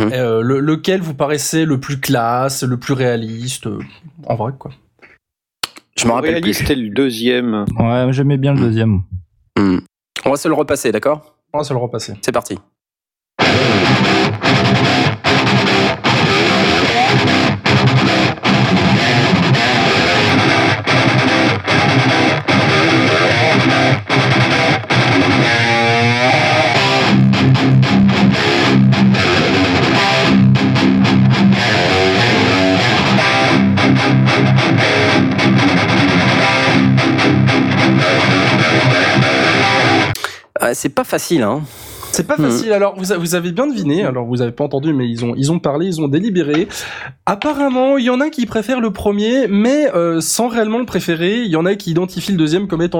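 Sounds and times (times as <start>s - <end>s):
speech: 0.0s - 4.8s, 6.0s - 12.7s, 13.5s - 15.2s, 40.7s - 52.9s
music recording with plate reverb effect: 13.4s - 40.1s.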